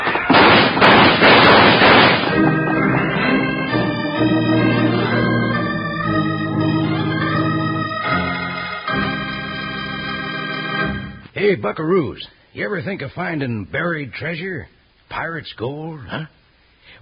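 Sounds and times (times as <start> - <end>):
gunfire in a radio drama shootout: 0.0 - 4.3
orchestral music sting: 2.3 - 11.2
speech: 11.6 - 17.0.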